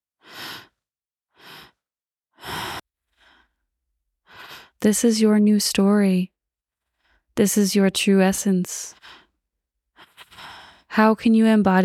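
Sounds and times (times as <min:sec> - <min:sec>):
slow breaths during a guided breathwork meditation: 0:00.2 - 0:01.8, 0:02.4 - 0:04.8, 0:10.0 - 0:10.9
speech: 0:04.8 - 0:06.4, 0:07.4 - 0:09.2, 0:11.0 - 0:11.8.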